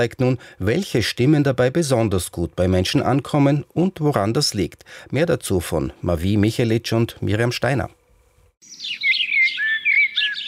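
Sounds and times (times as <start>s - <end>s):
speech: 0.0s - 8.0s
birdsong: 8.6s - 10.4s.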